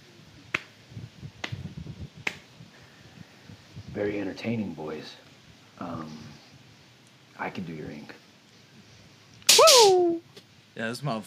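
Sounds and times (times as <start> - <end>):
slow clap: 0.5 - 0.8, 1.4 - 1.6, 2.2 - 2.4, 9.5 - 10.1
speech: 4.0 - 5.2, 5.8 - 6.3, 7.4 - 8.2, 10.8 - 11.2.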